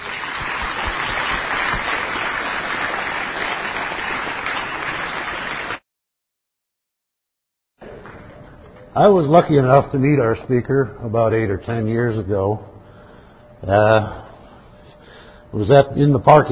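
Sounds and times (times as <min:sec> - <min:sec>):
round of applause: 0:00.0 - 0:05.8, 0:07.8 - 0:08.4
speech: 0:09.0 - 0:12.7, 0:13.6 - 0:14.2, 0:15.5 - 0:16.5.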